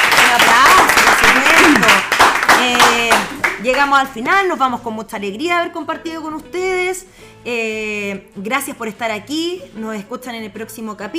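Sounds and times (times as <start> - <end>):
audience applause: 0.0 - 3.6
speech: 3.8 - 11.1.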